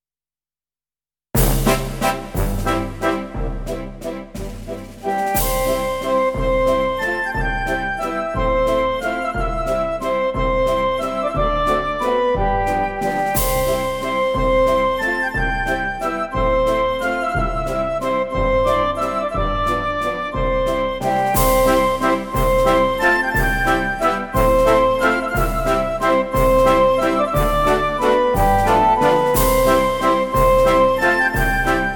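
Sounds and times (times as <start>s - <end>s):
waltz music: 1.4s - 31.9s.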